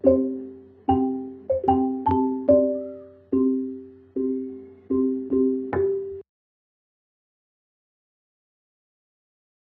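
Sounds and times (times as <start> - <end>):
xylophones: 0.0 - 6.2.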